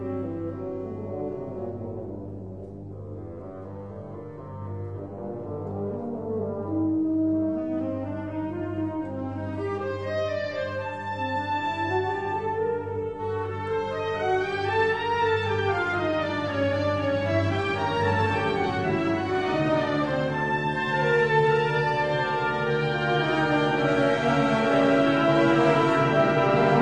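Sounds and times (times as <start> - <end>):
classical fantasia and fugue: 0.0 - 26.8.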